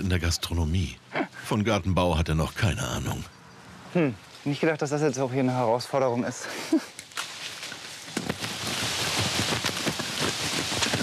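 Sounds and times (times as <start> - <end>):
speech: 0.0 - 6.9
rain falling: 8.2 - 11.0.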